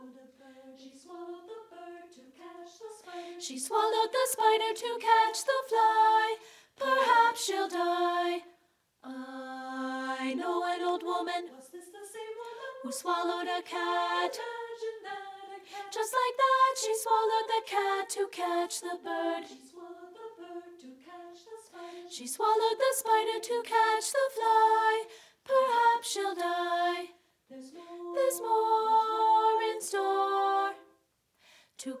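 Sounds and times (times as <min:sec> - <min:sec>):
soprano treble voice singing: 0:00.0 - 0:31.0.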